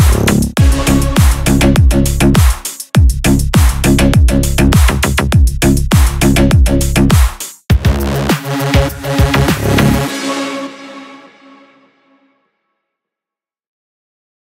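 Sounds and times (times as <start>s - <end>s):
car bass slap cyber bass: 0.0s - 10.1s.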